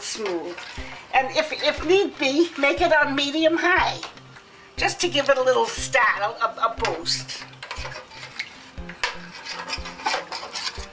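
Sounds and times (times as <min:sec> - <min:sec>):
utensil scraping and clinking against a pan stirring flour and bouillon sauce: 0:00.0 - 0:02.8, 0:06.9 - 0:10.9
speech: 0:00.1 - 0:04.2, 0:04.8 - 0:08.0.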